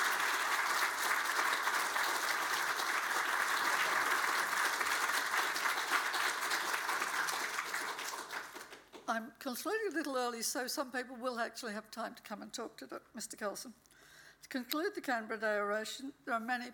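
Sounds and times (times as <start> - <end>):
round of applause for a speaker: 0.0 - 9.1
speech: 9.2 - 16.7.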